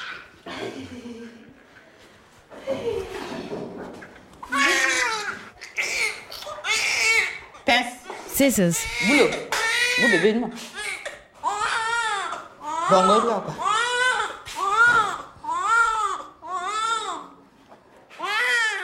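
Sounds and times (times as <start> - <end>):
newborn baby crying: 4.4 - 7.8, 8.8 - 17.4, 18.2 - 18.8
speech: 8.4 - 10.8, 12.9 - 13.7.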